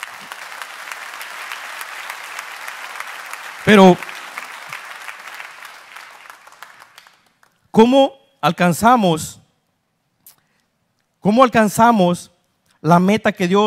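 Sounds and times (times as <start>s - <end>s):
audience applause: 0.0s - 7.6s
speech: 3.6s - 4.1s, 7.8s - 9.4s, 11.2s - 13.6s.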